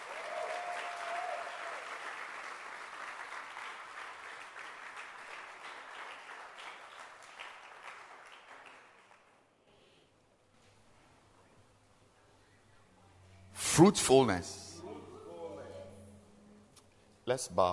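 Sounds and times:
audience clapping: 0.0s - 9.6s
speech: 13.8s - 14.6s, 17.4s - 17.7s.

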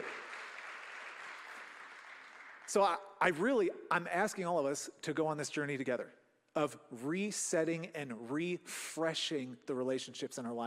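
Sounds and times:
audience clapping: 0.0s - 3.0s
speech: 2.7s - 10.6s.

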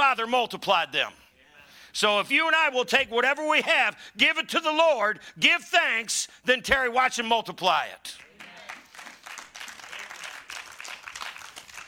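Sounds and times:
speech: 0.1s - 1.2s, 1.9s - 8.3s
quiet golf clap from audience: 8.2s - 11.8s.

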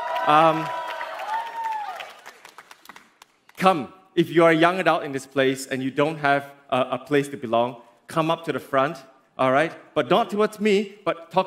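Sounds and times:
young adults cheering and clapping: 0.0s - 3.5s
speech: 0.2s - 0.8s, 3.6s - 11.4s.

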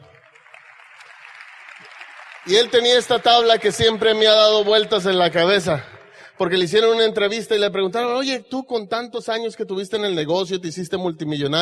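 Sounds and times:
audience applause: 0.0s - 7.0s
speech: 1.8s - 11.5s.

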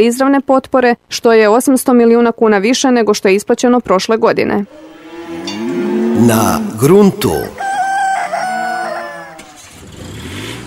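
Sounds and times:
speech: 0.0s - 4.8s, 6.2s - 7.6s
rooster crowing: 4.7s - 9.8s.

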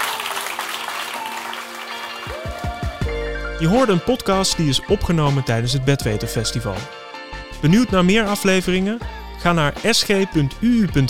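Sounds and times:
audience applause: 0.0s - 3.1s
speech: 3.6s - 7.0s, 7.6s - 11.0s.

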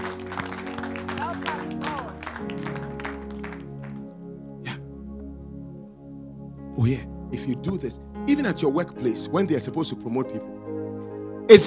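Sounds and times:
audience clapping: 0.0s - 4.1s
sustained musical tones: 0.0s - 11.5s
speech: 6.8s - 10.6s, 11.5s - 11.6s.

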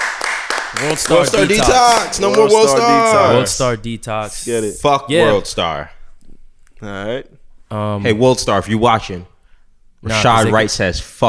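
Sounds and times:
people clapping: 0.0s - 3.1s
speech: 0.8s - 6.0s, 6.8s - 9.3s, 10.0s - 11.2s.

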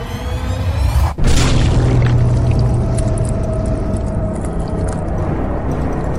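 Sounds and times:
blood splattering: 1.2s - 5.2s
crunch: 1.2s - 6.1s.

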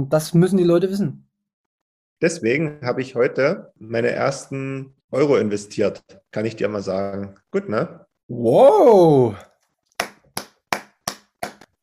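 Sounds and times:
speech: 0.0s - 1.2s, 2.2s - 9.5s
one person clapping: 9.9s - 11.8s.

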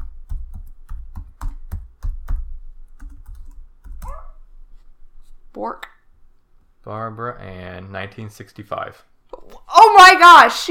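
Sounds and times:
loud rapid keyboard typing: 0.0s - 4.2s
speech: 5.5s - 5.9s, 6.8s - 9.1s, 10.0s - 10.6s.

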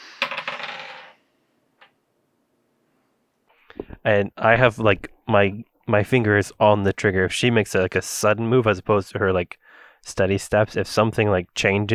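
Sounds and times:
dice rattling and clattering across a hard surface: 0.2s - 1.2s
speech: 4.0s - 11.9s.

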